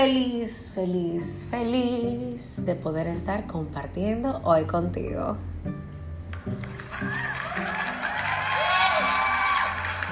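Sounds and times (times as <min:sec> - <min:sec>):
speech: 0:00.0 - 0:05.8, 0:06.5 - 0:07.8
crowd applauding: 0:06.4 - 0:10.1
whoops and high-pitched shouts: 0:06.9 - 0:10.1.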